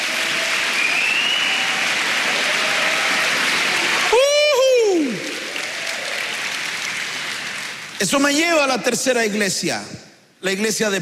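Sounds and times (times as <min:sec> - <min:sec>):
audience clapping: 0:00.0 - 0:08.4
speech: 0:08.0 - 0:11.0.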